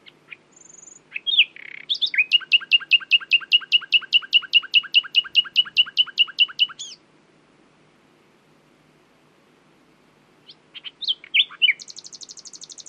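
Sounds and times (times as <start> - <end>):
common nightingale Luscinia megarhynchos singing: 0.0 - 7.0, 10.4 - 12.8.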